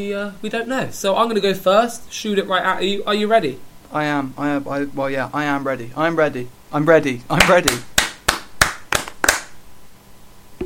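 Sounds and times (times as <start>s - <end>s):
speech: 0.0s - 7.9s
hand clap: 7.3s - 9.6s.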